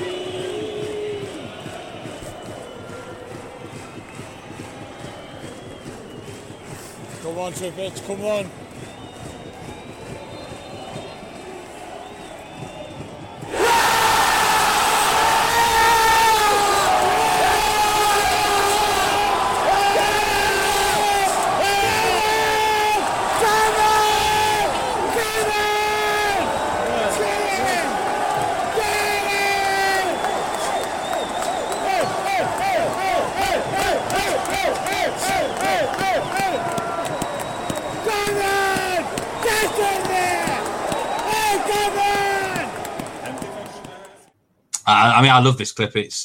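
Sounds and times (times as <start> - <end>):
football crowd at a cup match cheering through a penalty kick: 0.0 - 44.3
speech: 7.3 - 8.6, 45.2 - 46.2
whoops and bellowing voices: 13.5 - 42.8.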